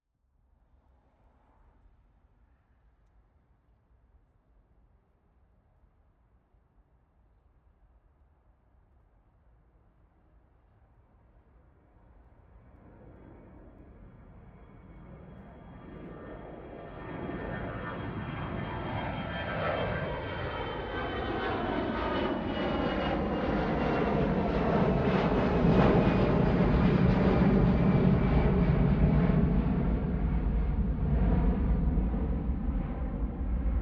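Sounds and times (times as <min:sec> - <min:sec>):
planes taking off: 0:12.6 - 0:33.7.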